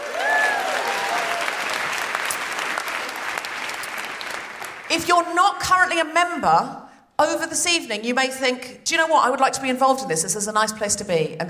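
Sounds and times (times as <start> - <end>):
audience applause: 0.0 - 4.9
speech: 5.0 - 11.4.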